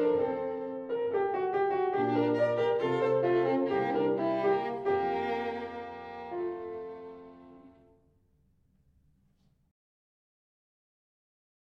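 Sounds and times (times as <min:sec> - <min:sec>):
violin sonata in B flat major: 0:00.0 - 0:08.2.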